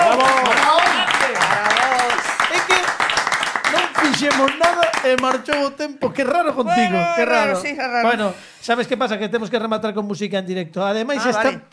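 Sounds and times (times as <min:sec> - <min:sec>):
audience applause: 0:00.0 - 0:05.4
speech: 0:04.4 - 0:11.7.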